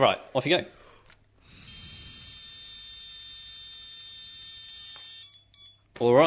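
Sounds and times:
breathy sound of someone blowing into a breath-test machine: 0.8 - 2.7
breath-test machine high electronic tone: 1.6 - 5.7.

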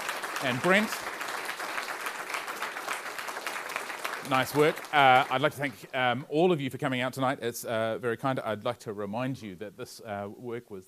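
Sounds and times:
audience applause: 0.0 - 5.8
speech: 0.4 - 1.2, 4.3 - 10.8.

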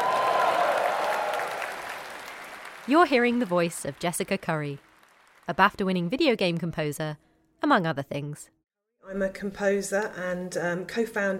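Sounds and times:
large crowd applauding and cheering: 0.0 - 5.5
speech: 2.9 - 4.9, 5.5 - 11.3.

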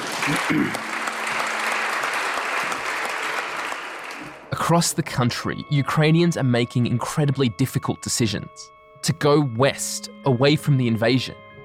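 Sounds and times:
MPs clapping in parliament: 0.0 - 4.6
speech: 0.3 - 0.9, 4.7 - 11.4.

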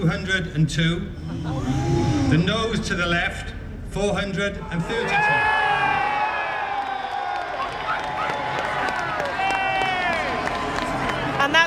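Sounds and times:
speech: 0.0 - 5.6
large crowd of protesters cheering and shouting outdoors: 4.7 - 11.6.

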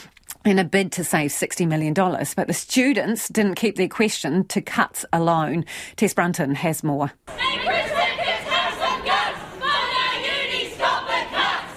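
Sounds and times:
speech: 0.4 - 7.8
protesters chanting at Otago University during the Prime Minister's visit: 7.3 - 11.7.

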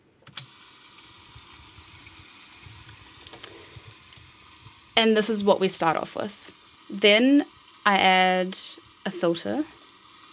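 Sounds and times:
recorded rain sound: 0.4 - 10.3
speech: 5.0 - 9.8.

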